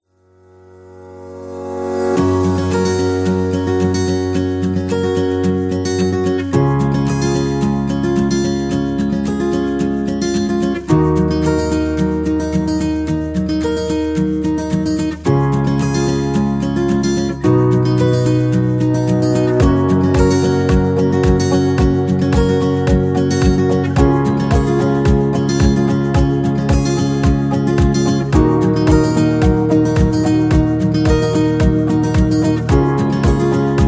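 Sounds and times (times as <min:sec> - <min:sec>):
positive acoustic music: 0:01.2 - 0:33.8.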